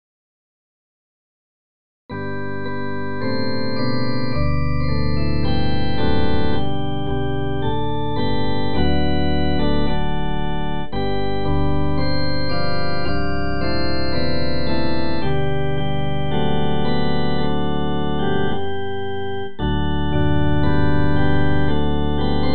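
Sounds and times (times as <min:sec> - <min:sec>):
instrumental hymns: 0:02.1 - 0:22.5.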